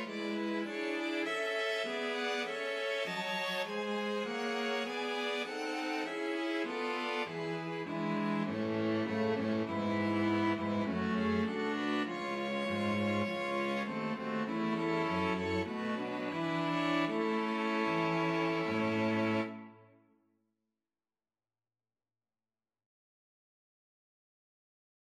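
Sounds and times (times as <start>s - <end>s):
string quartet playing a national anthem: 0.0s - 19.8s.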